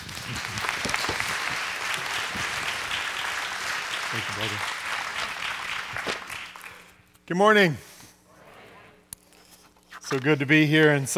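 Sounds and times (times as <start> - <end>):
audience applause welcoming a guest speaker to the stage: 0.0 - 6.9
speech: 4.1 - 4.8, 7.3 - 7.9, 10.1 - 11.1.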